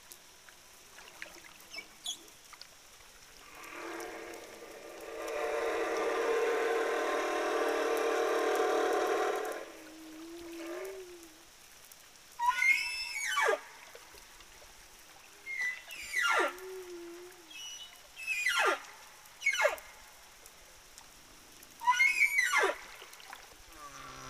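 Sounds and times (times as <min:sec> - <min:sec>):
Southern Indian Ocean humpback whale song with rumbling moans and wavering cries: 0:03.4 - 0:11.6, 0:12.4 - 0:13.9, 0:15.4 - 0:20.0, 0:21.8 - 0:24.2.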